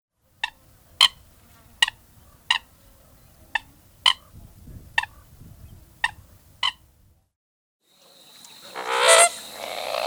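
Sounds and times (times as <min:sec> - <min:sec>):
American coot calls: 0:00.4 - 0:01.2, 0:01.8 - 0:04.4, 0:05.0 - 0:05.4, 0:08.0 - 0:10.0.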